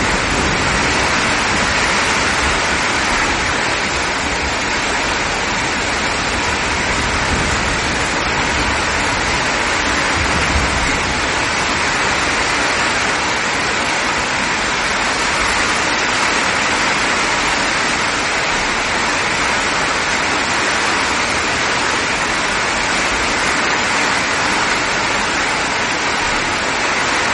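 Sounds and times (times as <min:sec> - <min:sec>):
low rumbling undertone: 0:00.0 - 0:13.3
heavy rainstorm pouring: 0:00.0 - 0:27.3.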